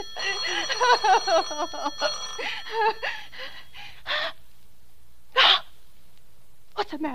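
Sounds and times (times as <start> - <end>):
telephone ringing in warbling, trilling bursts: 0.0 - 3.8
speech: 0.7 - 3.2, 6.9 - 7.1.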